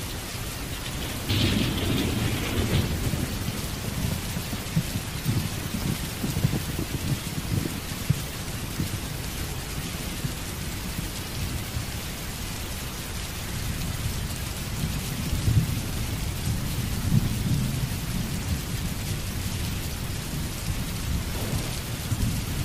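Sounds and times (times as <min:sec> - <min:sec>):
rain: 0:00.0 - 0:22.6
thunder: 0:00.2 - 0:09.0, 0:14.8 - 0:22.6.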